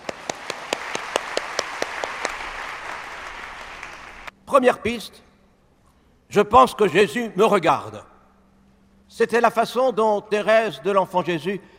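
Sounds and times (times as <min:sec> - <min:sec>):
audience applause: 0:00.0 - 0:04.3
speech: 0:04.5 - 0:05.3, 0:06.3 - 0:08.1, 0:09.1 - 0:11.7.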